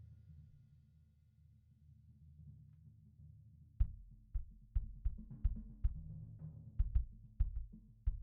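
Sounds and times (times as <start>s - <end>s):
bass drum hit: 3.8s - 6.1s, 6.8s - 8.2s.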